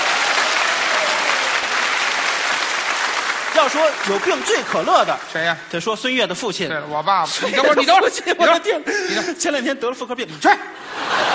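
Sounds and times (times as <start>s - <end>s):
audience applause: 0.0s - 5.6s
speech: 3.6s - 11.3s
laughter: 7.3s - 9.6s, 10.5s - 11.3s.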